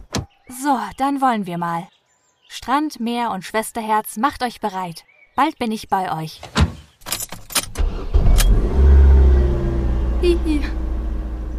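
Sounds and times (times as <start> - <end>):
speech: 0.5 - 6.6, 10.2 - 10.8
car starting and driving off: 7.7 - 11.5.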